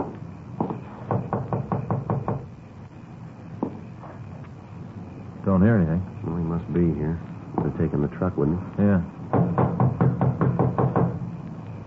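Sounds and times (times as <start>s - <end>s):
firm knocks on a front door: 0.0s - 2.5s, 9.3s - 11.2s
speech: 5.6s - 9.2s.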